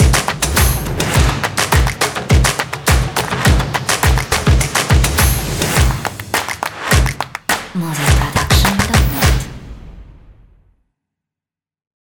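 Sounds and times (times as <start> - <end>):
energetic percussive claps and stomps: 0.0 - 9.5
energetic taiko drums: 0.0 - 9.5.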